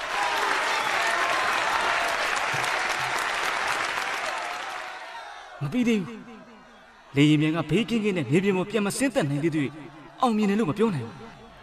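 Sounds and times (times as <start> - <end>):
applause from thousands of Shenyang aircraft factory staff: 0.0 - 5.9
speech: 5.6 - 6.3, 7.1 - 11.2.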